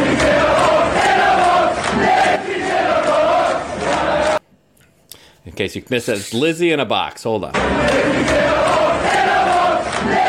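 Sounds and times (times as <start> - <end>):
soccer crowd chanting: 0.0 - 4.4, 7.6 - 10.2
speech: 5.6 - 8.6.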